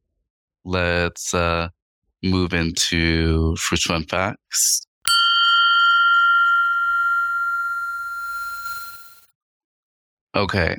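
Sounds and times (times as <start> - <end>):
speech: 0.6 - 4.9, 10.4 - 10.7
fire alarm: 5.8 - 9.2.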